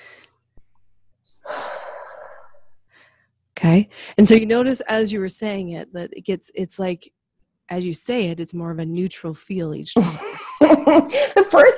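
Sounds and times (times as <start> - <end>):
deep breath during a relaxation exercise: 1.4 - 4.2
speech: 3.6 - 11.7.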